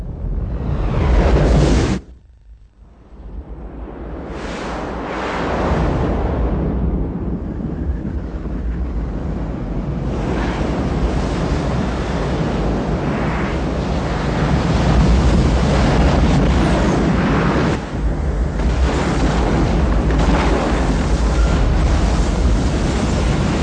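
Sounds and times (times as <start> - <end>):
wind: 0.0 - 23.6
heavy ocean surf standing in for tsunami waves: 4.2 - 7.4, 9.2 - 23.6.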